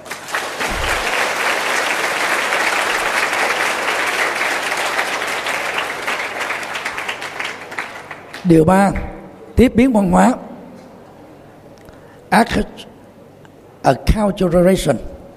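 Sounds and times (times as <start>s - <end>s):
large crowd applauding: 0.0s - 8.4s
speech: 8.4s - 10.4s, 12.3s - 12.9s, 13.8s - 15.1s.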